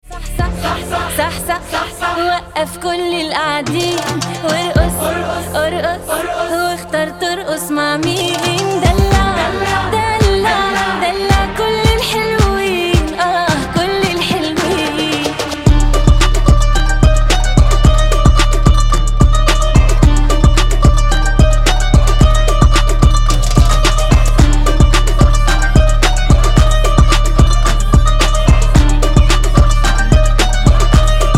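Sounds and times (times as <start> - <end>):
Arabic trap music: 0.0 - 31.3.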